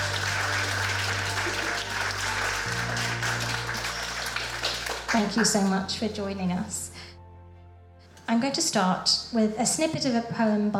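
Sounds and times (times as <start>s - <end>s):
audience applause: 0.0s - 5.8s
speech: 5.1s - 6.9s, 8.3s - 10.7s.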